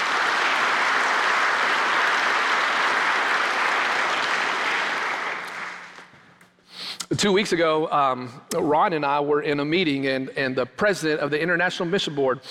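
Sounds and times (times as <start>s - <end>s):
crowd applause: 0.0s - 6.3s
speech: 7.1s - 12.4s.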